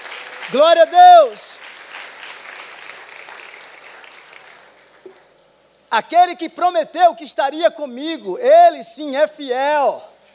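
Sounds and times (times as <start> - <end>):
audience applauding: 0.0 - 5.2
speech: 0.5 - 1.5, 5.9 - 10.1.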